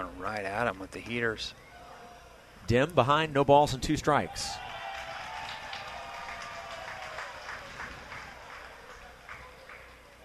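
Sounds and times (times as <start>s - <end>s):
speech: 0.0s - 1.6s, 2.7s - 4.6s
stadium crowd applause: 4.5s - 10.2s.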